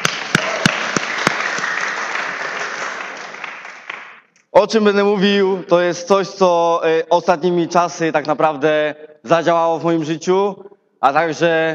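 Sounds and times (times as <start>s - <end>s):
audience applause: 0.0s - 4.2s
speech: 4.6s - 11.7s.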